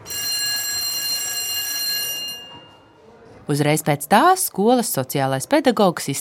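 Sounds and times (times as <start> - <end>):
school bell ringing for class: 0.0 - 2.9
speech: 3.5 - 6.1.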